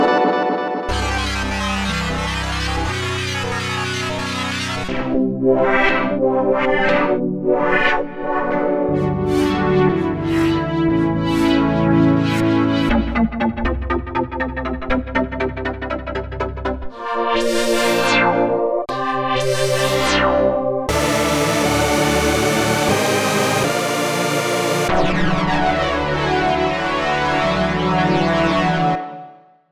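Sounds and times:
synth: 0.1 - 29.0.

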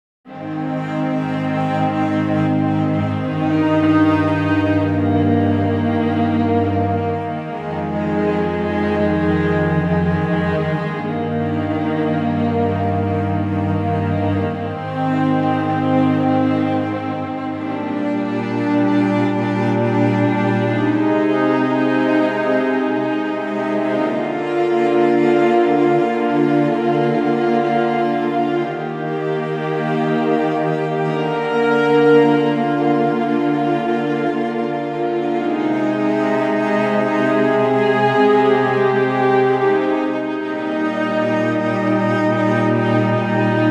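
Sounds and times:
subtle strings: 0.2 - 43.6.

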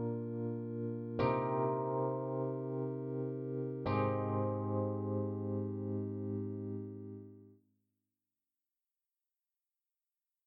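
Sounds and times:
room piano: 0.0 - 7.5.

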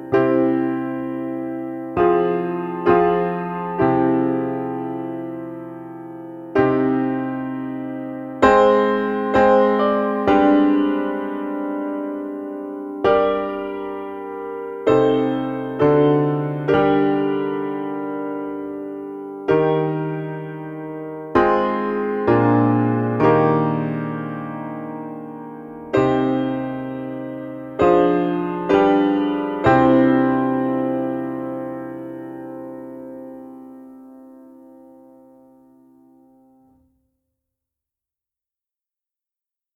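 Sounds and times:
cinematic piano funeral march: 0.0 - 35.2.

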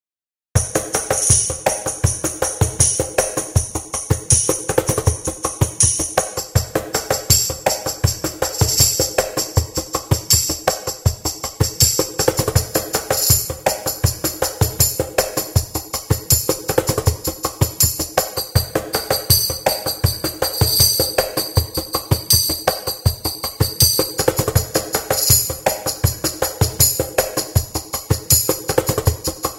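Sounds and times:
tambourines: 0.6 - 29.5.

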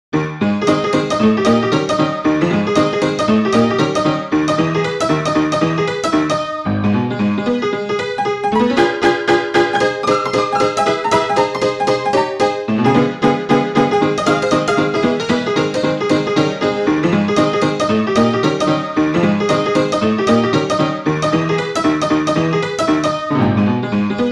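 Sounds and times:
jangle honky tonk piano: 0.1 - 24.3.

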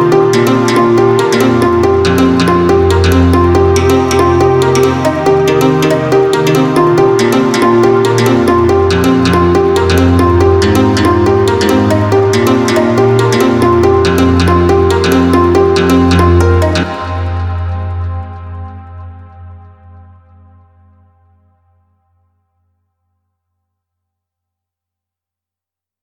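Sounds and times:
dulcimer playing softly: 0.0 - 17.5.

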